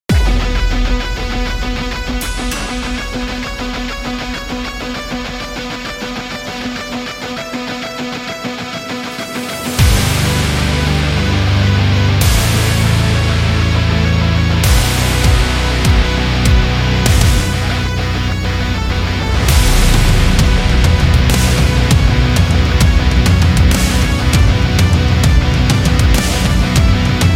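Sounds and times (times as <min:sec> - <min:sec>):
melodic death metal music: 0:00.1 - 0:27.3.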